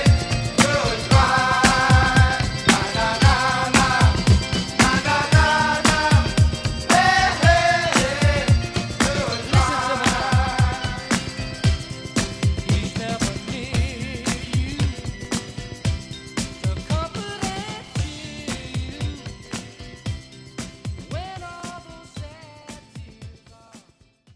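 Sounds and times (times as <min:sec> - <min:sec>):
1960s rock drum beat: 0:00.0 - 0:19.5.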